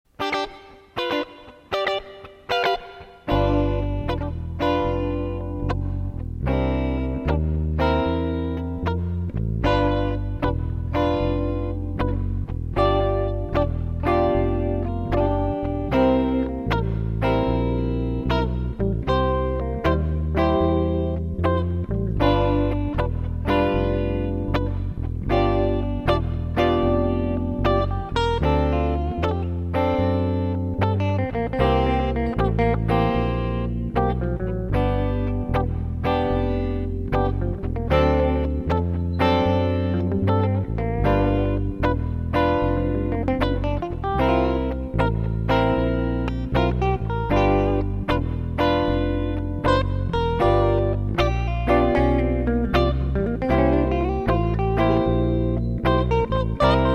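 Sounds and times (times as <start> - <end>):
blues music: 0.1 - 56.9.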